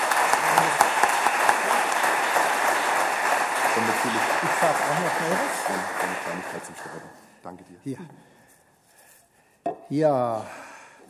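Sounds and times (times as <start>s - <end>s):
audience applause: 0.0s - 7.2s
speech: 4.9s - 8.4s, 9.9s - 10.6s.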